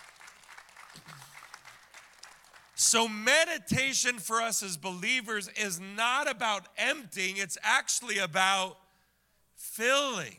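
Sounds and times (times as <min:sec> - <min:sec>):
crowd applauding: 0:00.0 - 0:02.8
speech: 0:02.8 - 0:08.8, 0:09.8 - 0:10.3.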